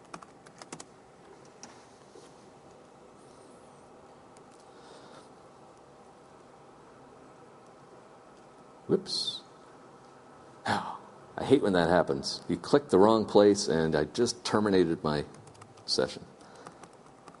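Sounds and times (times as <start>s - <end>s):
typing on a computer keyboard: 0.0s - 0.9s, 15.2s - 17.3s
steady hiss: 0.0s - 17.3s
speech: 8.9s - 9.4s, 11.4s - 16.3s.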